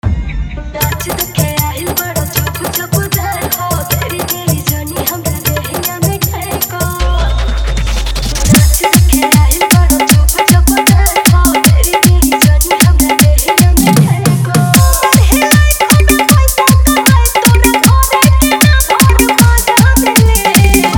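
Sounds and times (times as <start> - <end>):
full dholki drum with heavy bass: 0.8 - 20.9.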